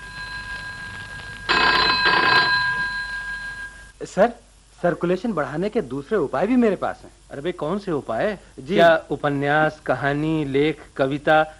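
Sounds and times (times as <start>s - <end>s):
telephone bell ringing: 0.0s - 3.9s
faint steady hum: 0.0s - 11.5s
speech: 4.0s - 11.5s.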